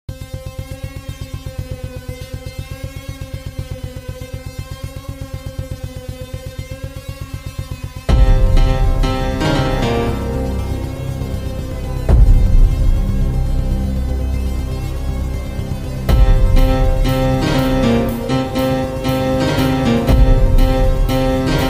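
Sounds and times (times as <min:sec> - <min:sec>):
keyboard cover: 0:08.1 - 0:21.6.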